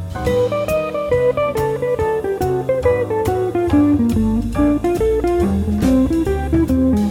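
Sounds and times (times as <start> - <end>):
musical lick: 0.1 - 7.0.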